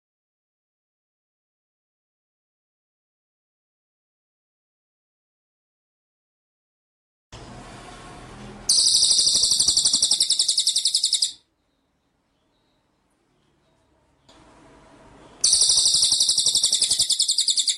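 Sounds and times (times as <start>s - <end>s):
white-rumped shama buzzy trill: 8.7s - 11.5s, 15.4s - 17.7s.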